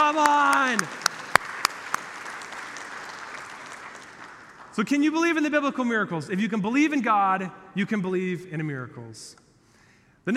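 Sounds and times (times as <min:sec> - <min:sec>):
audience applause: 0:00.0 - 0:04.8
speech: 0:04.8 - 0:09.4.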